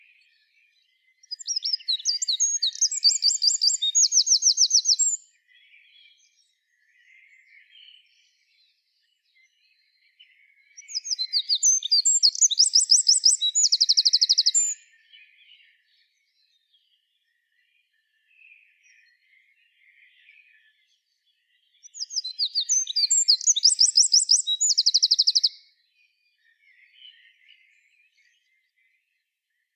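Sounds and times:
Eurasian wren trilling song: 1.2s - 5.2s, 10.8s - 14.9s, 21.8s - 25.7s.

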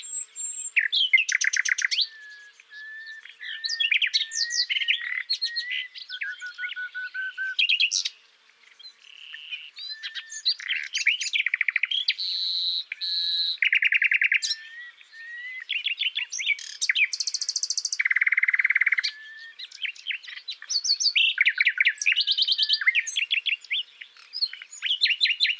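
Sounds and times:
common nightingale singing: 0.0s - 25.5s
faint birdsong: 0.0s - 25.5s.

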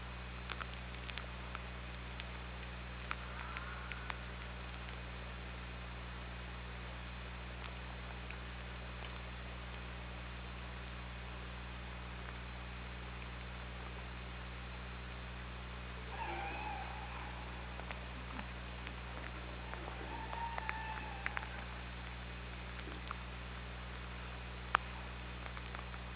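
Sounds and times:
scattered faint clicks: 0.0s - 6.1s, 7.1s - 10.6s, 16.0s - 26.1s
steady low underwater hum: 0.0s - 26.1s
killer whale call: 16.0s - 22.2s.

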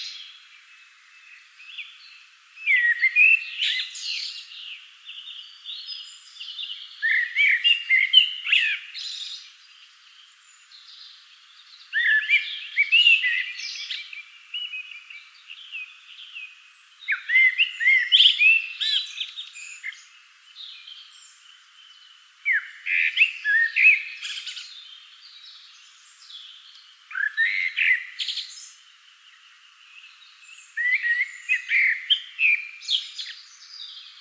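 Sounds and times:
Common blackbird singing: 0.0s - 34.1s
faint birdsong: 0.0s - 34.1s.

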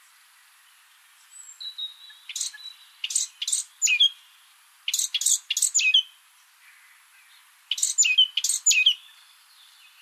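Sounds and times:
Eurasian blackcap Sylvia atricapilla twittering: 1.4s - 4.3s, 4.9s - 6.1s, 7.7s - 9.2s.

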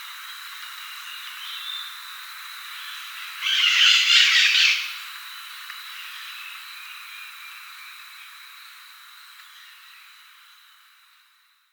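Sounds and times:
bird buzzy squawk: 3.4s - 5.0s.

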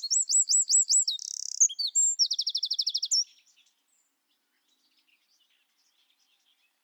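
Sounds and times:
Eurasian wren singing: 0.0s - 3.3s.

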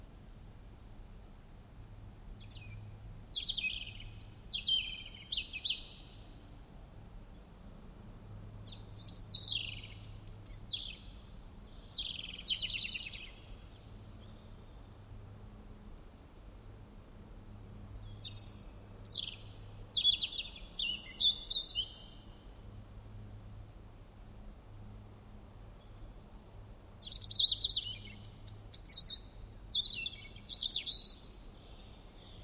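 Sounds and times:
European robin singing: 2.4s - 6.3s, 8.7s - 14.8s, 18.0s - 22.4s, 27.0s - 32.4s.

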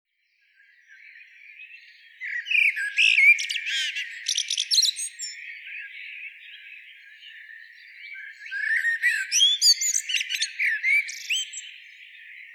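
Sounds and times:
common blackbird singing: 0.6s - 12.5s.

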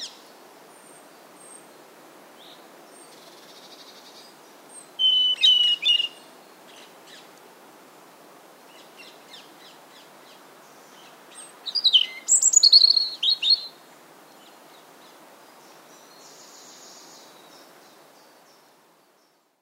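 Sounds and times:
European robin song: 2.4s - 7.3s, 8.7s - 19.4s.

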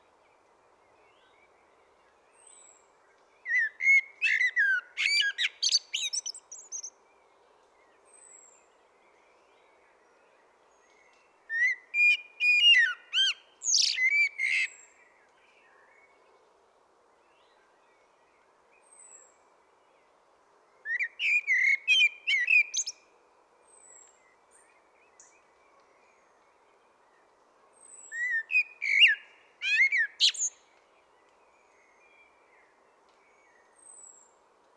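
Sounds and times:
common blackbird singing: 3.4s - 7.0s, 11.5s - 15.0s, 20.8s - 23.0s, 27.8s - 30.6s.

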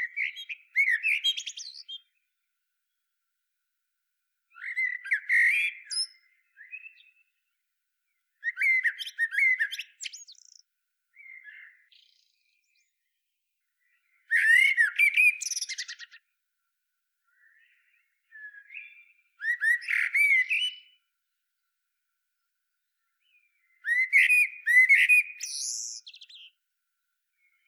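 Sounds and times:
Eurasian blackbird singing: 0.0s - 2.2s, 4.5s - 7.4s, 8.4s - 10.6s, 11.2s - 13.1s, 13.8s - 16.2s, 17.3s - 21.0s, 23.2s - 26.6s.

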